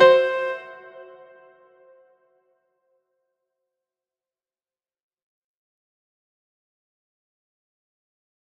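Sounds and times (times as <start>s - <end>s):
chord in second inversion in B flat: 0.0s - 1.6s.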